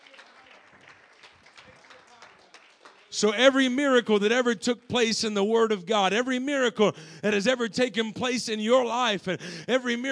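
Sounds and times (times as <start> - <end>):
audience round of applause: 0.0 - 3.2
speech: 3.2 - 10.0.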